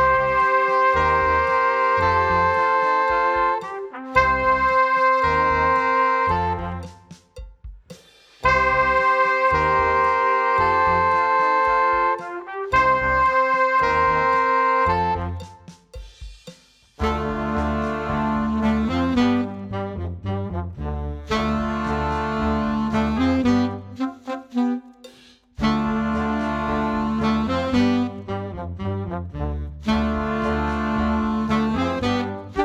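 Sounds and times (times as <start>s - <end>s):
loud heavy metal alto saxophone: 0.0s - 7.1s, 8.4s - 15.7s, 17.0s - 32.6s.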